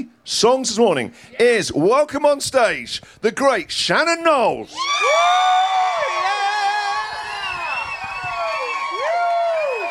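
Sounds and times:
speech: 0.0s - 5.6s
audience applause: 5.2s - 9.8s.

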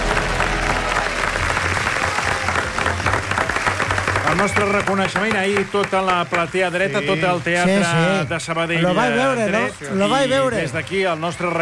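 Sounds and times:
audience applause: 0.0s - 8.0s
speech: 4.4s - 11.5s.

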